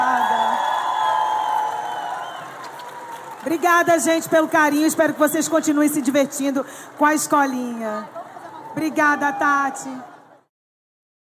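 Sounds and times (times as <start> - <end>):
high whoops: 0.0 - 3.4
audience clapping and cheering: 0.0 - 5.1
speech: 3.4 - 8.2, 8.8 - 10.1.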